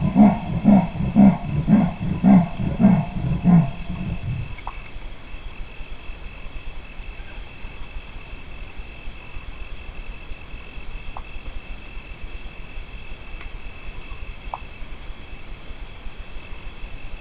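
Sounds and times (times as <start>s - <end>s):
leopard rasping call of deep coarse grunts: 0.0s - 4.6s.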